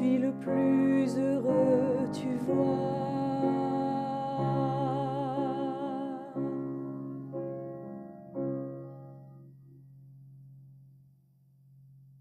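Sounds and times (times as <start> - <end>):
alto voices of a choir singing: 0.0 - 6.7.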